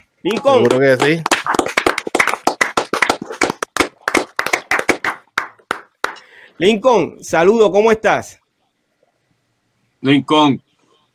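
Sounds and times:
speech: 0.2s - 1.3s, 6.6s - 8.4s, 10.0s - 10.7s
applause: 0.3s - 6.2s.

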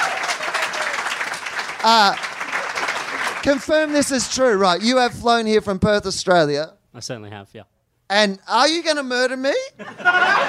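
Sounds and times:
whoop: 0.0s - 1.1s
audience clapping: 0.0s - 5.2s
speech: 1.8s - 2.2s, 3.4s - 10.4s
laughter: 9.7s - 10.4s.

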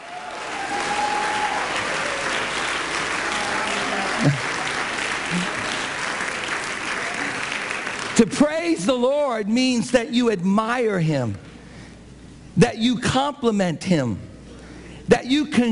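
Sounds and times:
crowd whoops and cheers: 0.0s - 5.7s
audience applause: 0.0s - 8.2s
speech: 4.2s - 4.5s, 8.2s - 11.5s, 12.6s - 14.3s, 15.1s - 15.7s.

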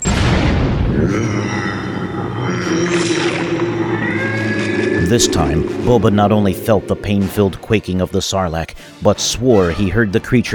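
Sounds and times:
grenade explosion: 0.0s - 1.1s
speech: 1.0s - 4.2s, 5.1s - 10.5s.

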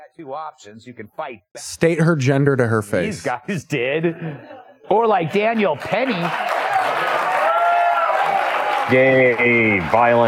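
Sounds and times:
speech: 0.1s - 7.1s, 8.9s - 10.2s
laughter: 3.8s - 7.3s
audience clapping: 5.3s - 10.2s.

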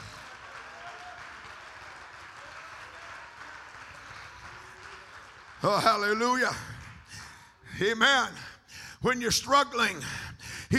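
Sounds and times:
audience clapping hands: 0.0s - 8.4s
speech: 5.6s - 6.7s, 7.8s - 10.7s.

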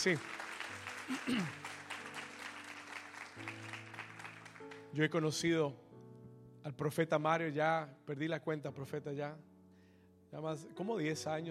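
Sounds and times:
speech: 0.0s - 0.4s, 1.1s - 1.7s, 4.9s - 5.8s, 6.6s - 9.5s, 10.3s - 11.4s
audience applause: 0.0s - 4.9s.

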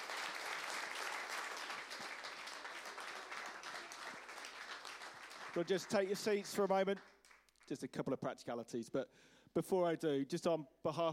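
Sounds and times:
audience applause: 0.0s - 7.7s
speech: 5.6s - 11.1s.

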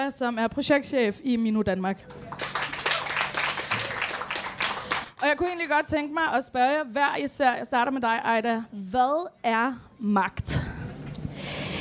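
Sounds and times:
speech: 0.0s - 2.4s, 5.2s - 10.7s
audience clapping: 2.0s - 5.5s.

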